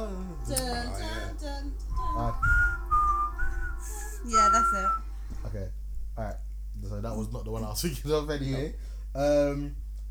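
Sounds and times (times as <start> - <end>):
low steady hum: 0.0 - 10.0
person whistling an eerie theme tune: 1.9 - 5.0
speech: 4.3 - 6.3, 7.0 - 9.8.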